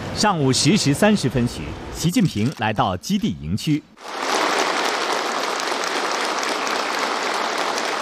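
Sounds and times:
speech: 0:00.2 - 0:04.1
warm applause from army officers and soldiers at a base in Xi'an: 0:04.0 - 0:07.9.

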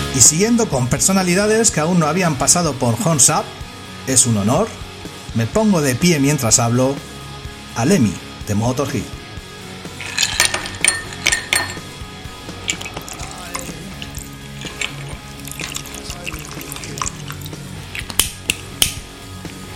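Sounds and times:
speech: 0:00.2 - 0:07.1, 0:07.8 - 0:09.2
glass of Jack Daniel's whiskey clinking and rattling: 0:10.0 - 0:19.0
faint watery trickle: 0:12.7 - 0:17.7.

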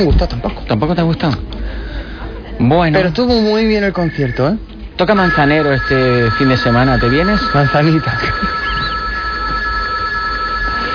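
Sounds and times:
speech: 0:00.0 - 0:01.8, 0:02.6 - 0:08.8
low hum: 0:00.0 - 0:10.9
telephone ringing with a high electronic tone: 0:05.0 - 0:10.9.

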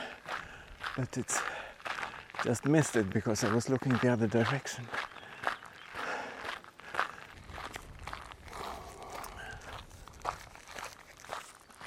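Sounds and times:
footsteps of someone running outdoors: 0:00.0 - 0:11.8
speech: 0:01.0 - 0:01.6, 0:02.4 - 0:05.1.

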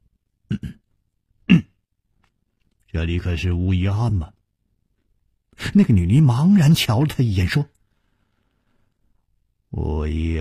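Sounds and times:
dry coughing: 0:00.5 - 0:01.8
throat clearing: 0:00.5 - 0:01.8
speech: 0:02.9 - 0:04.4, 0:05.6 - 0:07.8, 0:09.7 - 0:10.3.

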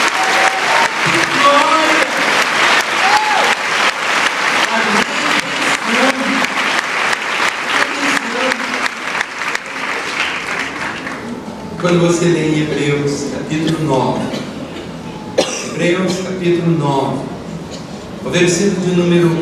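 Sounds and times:
audience applauding: 0:00.0 - 0:11.8
speech: 0:11.8 - 0:14.5, 0:15.8 - 0:17.3, 0:18.2 - 0:19.4.

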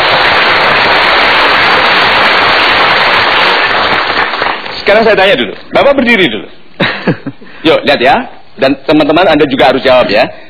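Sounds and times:
audience applause: 0:00.0 - 0:05.1
speech: 0:04.9 - 0:10.4.

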